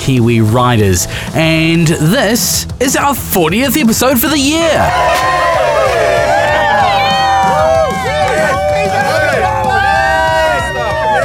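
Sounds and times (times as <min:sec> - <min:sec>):
speech: 0:00.0 - 0:06.0
canned applause and crowd cheering sound effect: 0:04.6 - 0:11.2
rising whoops and shouts: 0:04.8 - 0:11.2.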